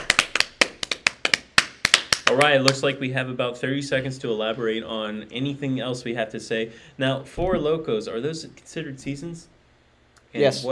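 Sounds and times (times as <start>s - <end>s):
clapping: 0.0s - 2.8s
speech: 2.3s - 9.5s, 10.3s - 10.6s.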